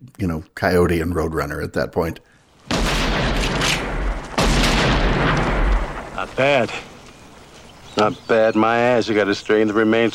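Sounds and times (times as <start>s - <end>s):
speech: 0.2s - 3.2s, 6.2s - 6.9s, 8.0s - 10.1s
.44 Magnum pistol shot: 2.7s - 7.3s.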